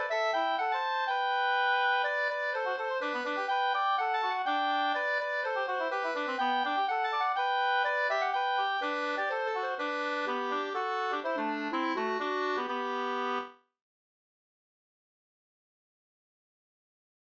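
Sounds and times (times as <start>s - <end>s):
slangpolska folk dance tune: 0.0s - 13.5s.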